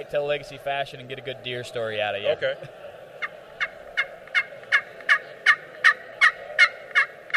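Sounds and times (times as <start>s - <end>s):
speech: 0.0s - 2.9s
hunter's turkey call imitating turkey yelps: 3.2s - 7.3s.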